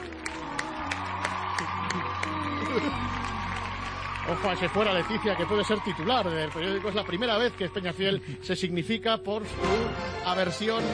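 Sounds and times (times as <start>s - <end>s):
audience applause: 0.0s - 8.2s
speech: 4.3s - 10.9s.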